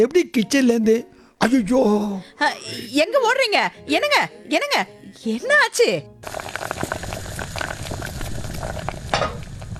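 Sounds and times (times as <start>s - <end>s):
speech: 0.0s - 6.8s
cabbage curry simmering in a pan: 6.2s - 9.7s.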